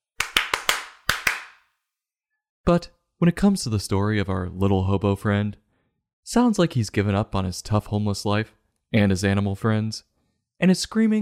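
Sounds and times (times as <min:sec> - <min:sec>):
hand claps: 0:00.0 - 0:01.7
speech: 0:02.7 - 0:05.6, 0:06.3 - 0:11.1.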